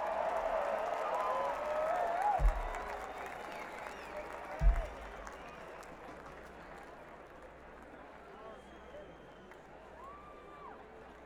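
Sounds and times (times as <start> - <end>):
audience applause: 0.0 - 6.5.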